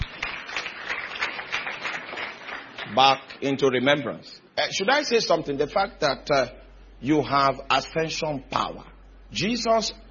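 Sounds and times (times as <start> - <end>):
audience applause at a church service: 0.0 - 3.2
speech: 2.9 - 10.1.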